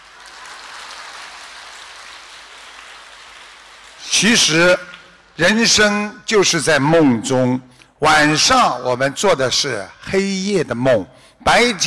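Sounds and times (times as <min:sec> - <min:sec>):
applause: 0:00.0 - 0:05.4
speech: 0:04.0 - 0:11.8.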